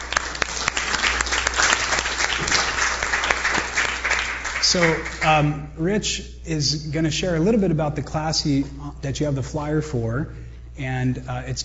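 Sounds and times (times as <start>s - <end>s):
audience applause welcoming a speaker: 0.0s - 5.4s
speech: 4.7s - 11.6s.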